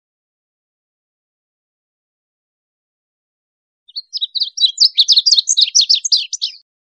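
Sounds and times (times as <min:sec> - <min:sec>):
rapid high-pitched bird twittering: 0:03.9 - 0:06.6.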